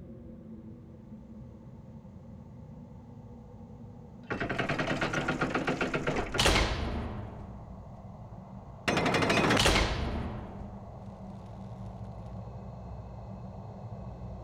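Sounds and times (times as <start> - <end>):
portcullis closing and opening: 4.3 - 8.0, 8.9 - 11.4.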